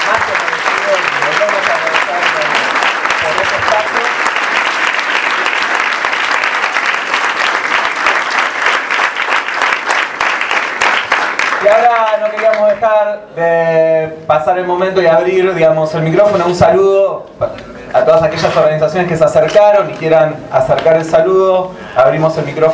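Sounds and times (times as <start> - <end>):
audience applause: 0.0 - 12.7
speech: 11.7 - 22.7.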